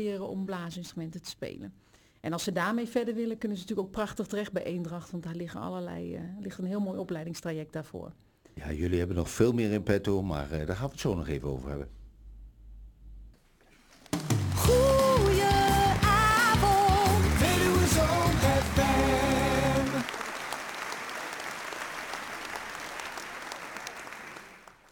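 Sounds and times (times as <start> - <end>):
speech: 0.0 - 12.0
applause: 14.2 - 24.9.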